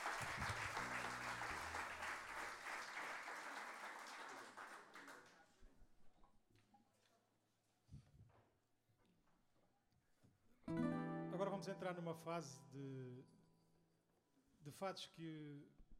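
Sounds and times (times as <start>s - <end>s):
audience applause: 0.0s - 5.4s
speech: 11.6s - 13.4s, 14.6s - 15.8s.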